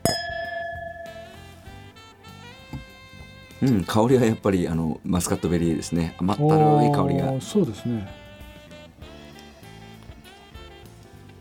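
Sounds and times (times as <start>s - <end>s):
wine glasses clinking in a toast: 0.0s - 4.0s
speech: 3.6s - 8.2s.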